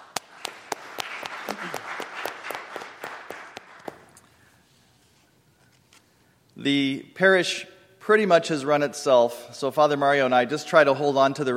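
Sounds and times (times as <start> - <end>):
parish audience applause: 0.0 - 4.2
speech: 6.6 - 11.5.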